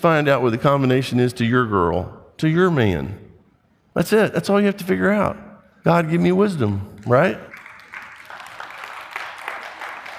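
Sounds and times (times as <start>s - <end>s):
speech: 0.0s - 3.2s, 4.0s - 7.5s
church congregation giving weak clapping: 6.5s - 10.1s.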